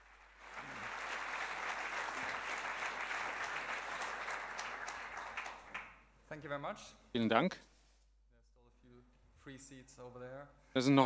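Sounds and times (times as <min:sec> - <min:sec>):
audience applause: 0:00.0 - 0:06.0
speech: 0:06.3 - 0:07.7, 0:09.5 - 0:11.0.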